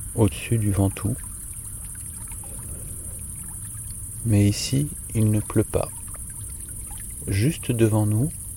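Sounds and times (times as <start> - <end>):
low rumble: 0.0 - 8.5
small splashes and trickles: 0.0 - 8.5
swimming pool water gently rippling: 0.0 - 8.5
speech: 0.2 - 1.3, 4.2 - 6.0, 7.2 - 8.4.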